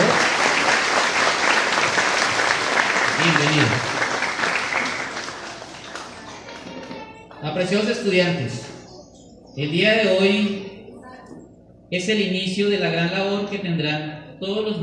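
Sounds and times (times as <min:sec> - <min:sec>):
audience applause: 0:00.0 - 0:06.9
speech: 0:03.3 - 0:03.9, 0:07.6 - 0:08.7, 0:09.6 - 0:10.7, 0:11.9 - 0:14.8.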